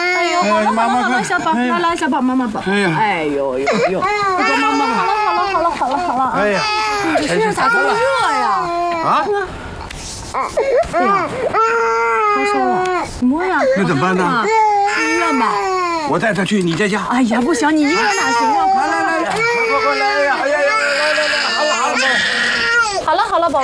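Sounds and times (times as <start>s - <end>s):
infant crying: 0.0s - 1.8s, 3.6s - 9.4s, 10.3s - 16.2s, 17.6s - 23.6s
speech: 0.4s - 9.7s, 10.3s - 18.7s, 23.1s - 23.6s.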